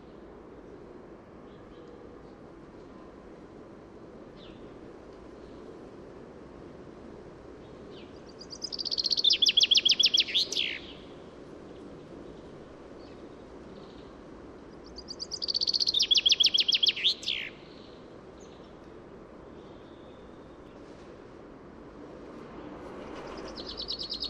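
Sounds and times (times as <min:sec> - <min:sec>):
common chaffinch song: 0:07.6 - 0:18.8, 0:23.2 - 0:24.2.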